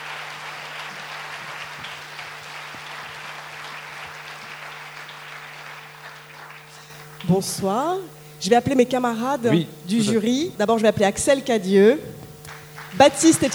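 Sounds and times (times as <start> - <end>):
audience applause: 0.0 - 7.3, 12.4 - 13.5
speech: 7.3 - 12.2, 12.9 - 13.5.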